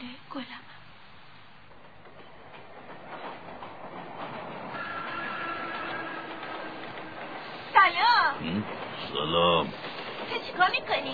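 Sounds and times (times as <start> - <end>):
train rumbling on rails: 0.7 - 11.1
metallic screeching: 4.7 - 7.1.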